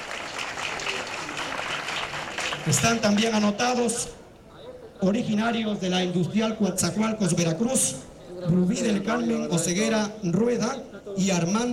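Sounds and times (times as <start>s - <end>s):
audience applause at a contest event in Veracruz: 0.0s - 3.4s
speech: 2.6s - 4.2s, 5.0s - 11.7s.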